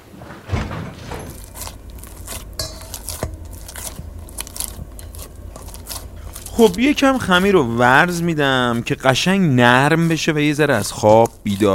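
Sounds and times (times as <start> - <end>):
dishes clinking: 0.6 - 6.5
person biting and chewing pizza: 1.4 - 11.7
speech: 6.6 - 11.7.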